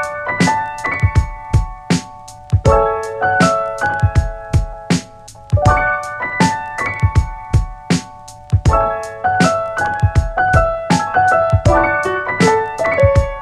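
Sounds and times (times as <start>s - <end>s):
breezy keys music: 0.0s - 13.3s.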